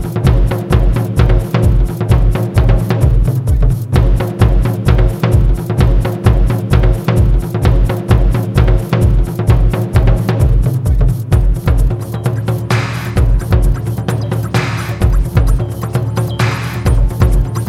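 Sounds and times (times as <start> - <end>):
drums: 0.0 - 17.6.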